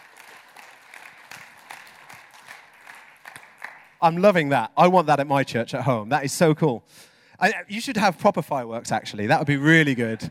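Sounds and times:
crowd applause: 0:00.0 - 0:04.0
speech: 0:04.0 - 0:10.2.

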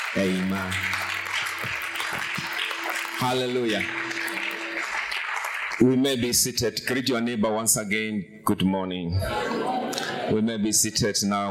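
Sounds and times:
audience clapping hands: 0:00.0 - 0:07.3, 0:09.9 - 0:10.2
speech: 0:00.1 - 0:01.0, 0:03.2 - 0:04.0, 0:05.8 - 0:11.4
laughter: 0:09.2 - 0:10.7.

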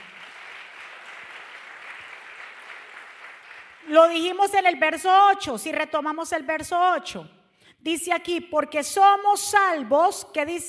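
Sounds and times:
crowd applauding: 0:00.0 - 0:03.9
speech: 0:03.9 - 0:10.6.

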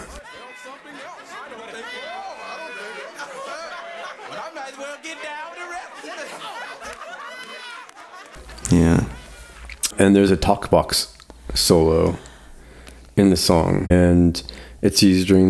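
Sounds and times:
sampled crowd chatter in a song: 0:00.0 - 0:09.9
laughter: 0:00.6 - 0:09.7
speech: 0:08.7 - 0:09.2, 0:10.0 - 0:12.3, 0:13.2 - 0:15.4.

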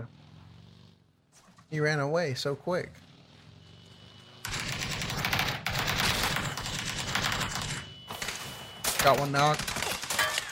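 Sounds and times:
speech: 0:01.7 - 0:03.1, 0:09.0 - 0:09.8
video game automatic gunfire: 0:04.4 - 0:10.5.

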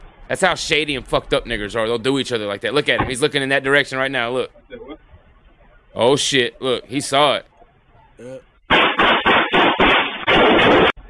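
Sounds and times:
speech: 0:00.3 - 0:05.1, 0:06.0 - 0:07.5, 0:08.2 - 0:08.5, 0:10.7 - 0:11.0
brief voice: 0:08.2 - 0:08.4
burst of gunfire from a video: 0:08.7 - 0:11.0.

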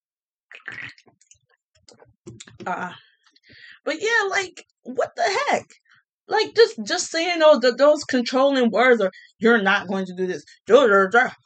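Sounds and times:
person sipping a Bang energy drink: 0:00.5 - 0:01.0
speech: 0:00.5 - 0:11.4.

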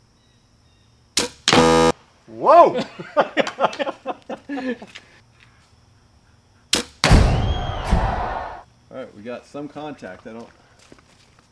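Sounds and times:
target buzzing tonal ring: 0:01.5 - 0:02.0
speech: 0:02.3 - 0:03.9, 0:04.5 - 0:05.1, 0:09.0 - 0:10.6
laughter: 0:02.7 - 0:05.0
shot fired at a target: 0:06.8 - 0:08.3.

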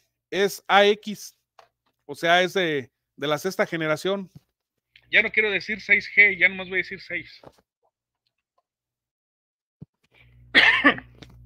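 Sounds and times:
speech: 0:00.3 - 0:01.4, 0:02.1 - 0:04.4, 0:05.1 - 0:07.7
dry cough from an irritated throat: 0:10.5 - 0:11.2.

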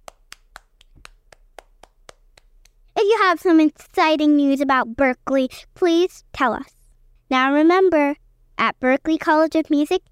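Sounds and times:
hand claps: 0:00.0 - 0:02.8
speech: 0:03.2 - 0:10.1.

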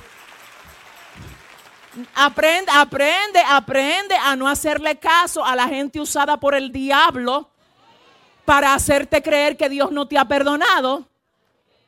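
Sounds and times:
audience applauding: 0:00.0 - 0:02.4
speech: 0:02.0 - 0:07.5, 0:08.5 - 0:11.1.

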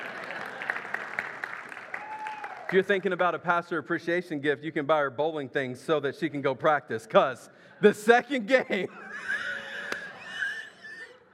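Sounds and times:
clapping: 0:00.0 - 0:02.8
speech: 0:02.7 - 0:09.3
laughter: 0:08.0 - 0:11.3.

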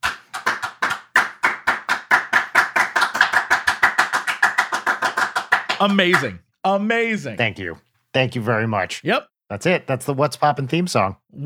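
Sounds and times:
slow clapping: 0:00.0 - 0:06.3
speech: 0:05.8 - 0:11.4.

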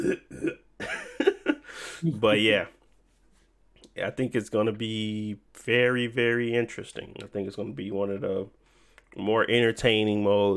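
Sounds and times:
speech: 0:00.0 - 0:00.6, 0:02.0 - 0:02.8, 0:04.0 - 0:10.5
person coughing: 0:00.0 - 0:00.7.

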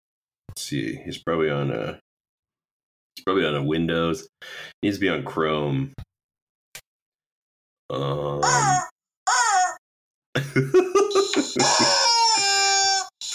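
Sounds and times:
speech: 0:00.6 - 0:02.0, 0:03.2 - 0:06.1, 0:07.9 - 0:08.9, 0:10.4 - 0:11.0, 0:11.6 - 0:12.0
loud rubber chicken squawk: 0:08.4 - 0:09.8, 0:11.6 - 0:13.1
laughter: 0:10.4 - 0:12.9.

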